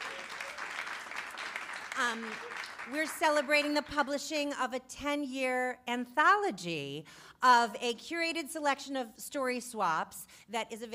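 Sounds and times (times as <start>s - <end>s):
audience applause: 0.0s - 3.5s
speech: 2.0s - 10.9s.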